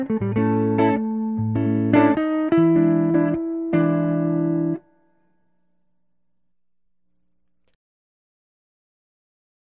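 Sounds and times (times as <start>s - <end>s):
blues guitar solo: 0.0s - 4.8s.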